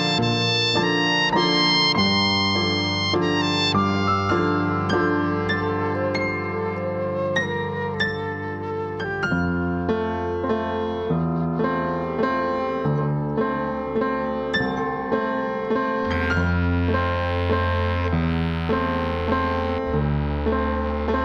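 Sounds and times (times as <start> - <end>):
flute in a film score: 0.0 - 14.0
clarinet in a film score: 0.0 - 21.2.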